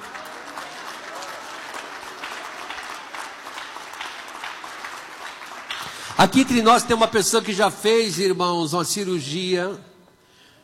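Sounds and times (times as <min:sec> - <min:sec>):
audience applause: 0:00.0 - 0:07.6
speech: 0:06.2 - 0:09.9.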